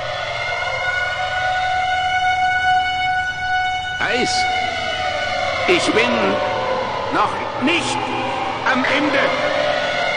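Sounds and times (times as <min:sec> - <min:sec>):
alarm sirens wailing throughout a spaceship: 0:00.0 - 0:10.1
speech: 0:04.1 - 0:04.6, 0:05.7 - 0:06.5, 0:07.1 - 0:09.5.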